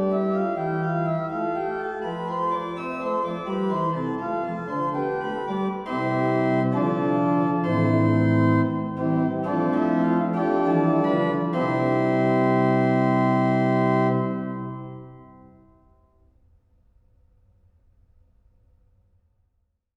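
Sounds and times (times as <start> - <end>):
organ prelude in C played by organist: 0.0 - 15.8.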